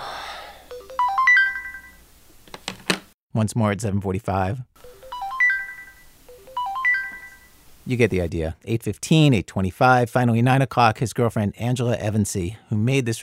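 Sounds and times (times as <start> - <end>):
wake-up alarm chiming a melodic phrase of tonal beeps: 0.7 - 2.0, 4.8 - 7.5
speech: 3.4 - 4.8, 7.9 - 13.2.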